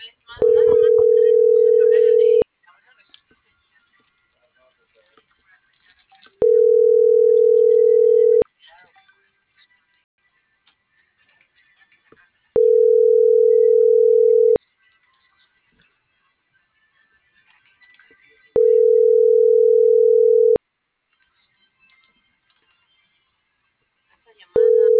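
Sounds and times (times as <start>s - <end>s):
telephone line tone while a call is dialled: 0.4s - 2.4s, 6.4s - 8.4s, 12.6s - 14.6s, 18.6s - 20.6s, 24.6s - 24.9s.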